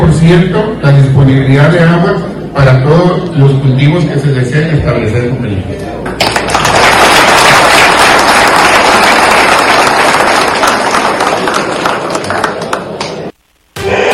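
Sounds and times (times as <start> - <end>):
speech: 0.0 - 6.1
crowd applauding at assembly meeting: 6.1 - 13.3.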